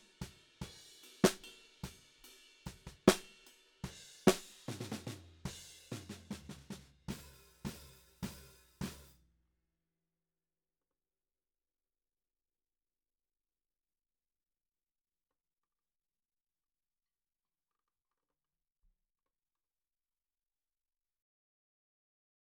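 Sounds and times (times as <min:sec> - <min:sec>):
snare drum: 0:00.0 - 0:09.2.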